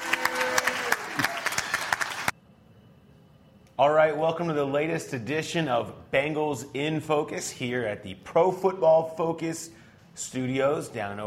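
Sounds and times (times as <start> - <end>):
audience applause: 0.0 - 2.3
faint hum: 0.0 - 11.2
speech: 3.8 - 11.2.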